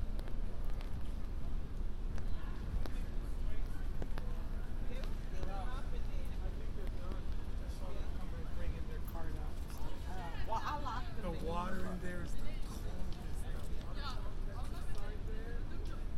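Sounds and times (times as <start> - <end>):
voices of passersby: 0.0 - 16.1
wind and traffic rumble on Broadway on a rainy night: 0.0 - 16.1.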